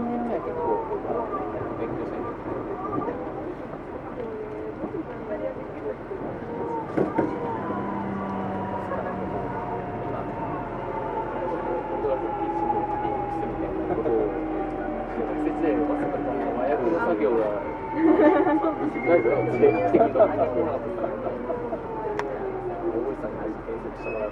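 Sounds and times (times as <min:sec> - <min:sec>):
Tokyu 2000 series train rumble between Shibuya and Azamino: 0:00.0 - 0:24.3
faint voices: 0:00.0 - 0:24.3
laughter: 0:17.8 - 0:20.4.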